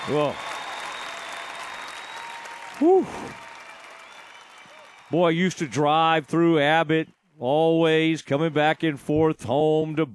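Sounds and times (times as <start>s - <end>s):
applause sound effect: 0.0s - 6.3s, 8.0s - 9.4s
speech: 0.1s - 0.5s, 2.8s - 3.4s, 5.1s - 10.1s.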